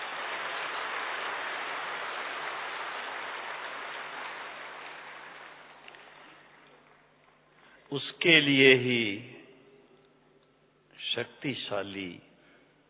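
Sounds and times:
audience clapping: 0.0 - 7.3
speech: 7.9 - 9.3, 11.2 - 12.3.

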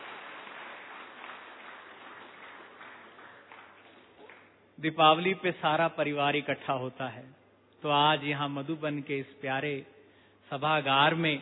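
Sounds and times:
audience applause: 0.0 - 4.5
speech: 4.8 - 9.9, 10.5 - 11.4.

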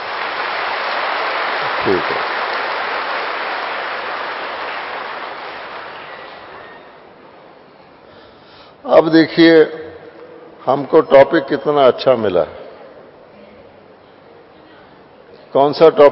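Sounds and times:
audience applause: 0.0 - 7.0
speech: 1.8 - 2.3, 8.9 - 9.8, 10.6 - 12.6, 15.6 - 16.1.

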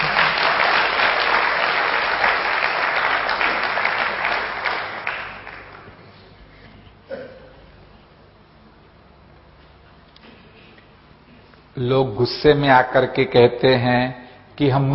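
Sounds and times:
audience applause: 0.0 - 6.0
speech: 11.8 - 14.9.

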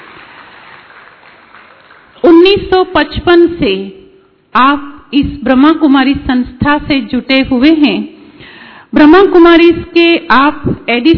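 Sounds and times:
loud audience applause: 0.0 - 2.2
speech: 2.5 - 11.1.

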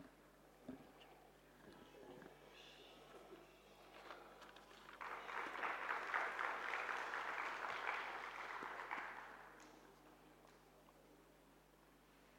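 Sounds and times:
audience applause: 4.9 - 9.7.

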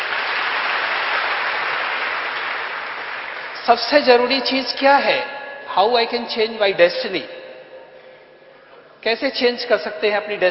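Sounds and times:
audience applause: 0.0 - 3.6
speech: 3.7 - 7.4, 9.0 - 10.4.

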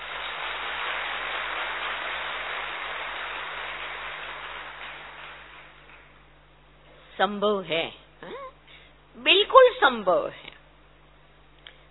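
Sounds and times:
crowd clapping for themselves at a gathering: 0.0 - 6.2
low steady hum: 0.0 - 11.8
speech: 7.2 - 8.5, 9.2 - 10.5.

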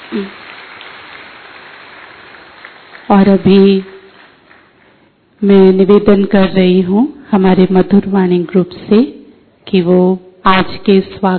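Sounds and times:
audience applause: 0.0 - 3.1
speech: 0.1 - 0.4, 3.1 - 4.0, 5.4 - 11.3.

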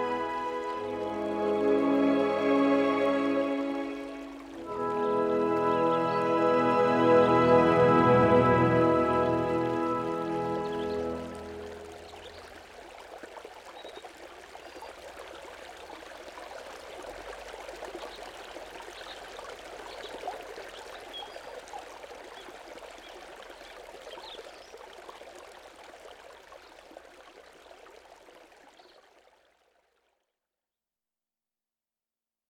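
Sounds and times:
nature music: 0.0 - 25.2.

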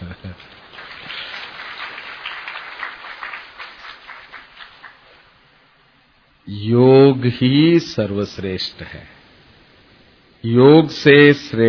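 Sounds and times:
audience clapping applause: 0.3 - 5.4
speech: 6.5 - 9.2, 10.4 - 11.6.

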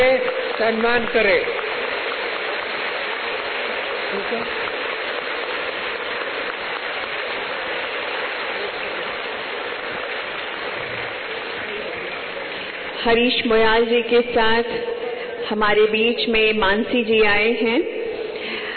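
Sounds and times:
speech: 0.0 - 1.6, 4.1 - 4.7, 13.0 - 14.9, 15.5 - 18.0
large audience standing and clapping loudly: 0.0 - 13.9, 18.2 - 18.7.

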